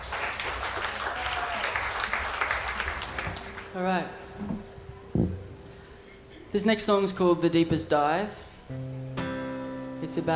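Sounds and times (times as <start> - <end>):
audience applause welcoming a band onto the stage: 0.0 - 3.8
speech: 3.7 - 5.3, 6.5 - 8.9, 10.1 - 10.3.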